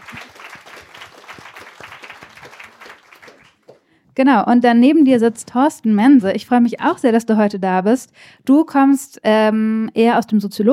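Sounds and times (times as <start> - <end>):
audience applause: 0.0 - 3.8
speech: 4.2 - 10.7.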